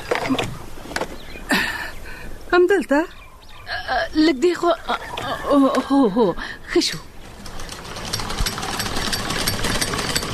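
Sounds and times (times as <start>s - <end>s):
speech: 0.3s - 0.5s, 2.5s - 3.2s, 3.9s - 7.1s
sewing machine running: 7.2s - 10.3s.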